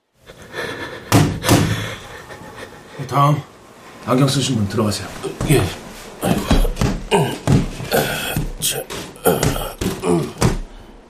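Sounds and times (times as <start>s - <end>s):
knocking on a wall: 1.1s - 1.8s, 5.4s - 10.7s
speech: 3.1s - 6.5s.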